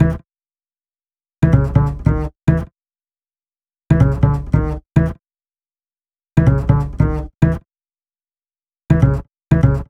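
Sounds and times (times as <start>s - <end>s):
upright bass cinematic funk: 1.4s - 2.7s, 3.9s - 5.2s, 6.4s - 7.6s, 8.9s - 9.8s.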